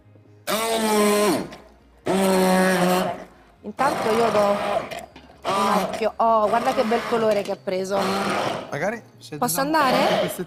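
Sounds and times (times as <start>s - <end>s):
blender whirring through a sauce of salt, pepper and mustard: 0.5s - 8.8s, 9.9s - 10.4s
speech: 4.0s - 5.0s, 5.7s - 10.4s.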